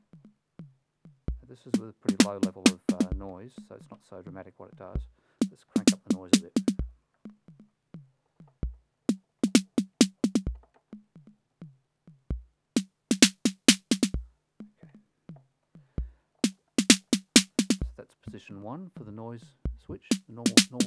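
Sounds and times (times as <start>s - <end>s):
TR-606 drum machine noise snare: 1.8s - 3.1s, 5.4s - 6.8s, 9.1s - 10.5s, 12.8s - 14.2s, 16.4s - 17.8s, 20.1s - 20.8s.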